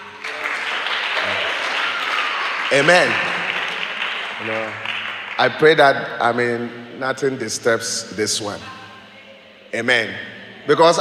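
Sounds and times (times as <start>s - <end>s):
audience clapping: 0.0s - 6.1s
speech: 2.7s - 3.3s, 4.4s - 8.8s, 9.7s - 10.9s.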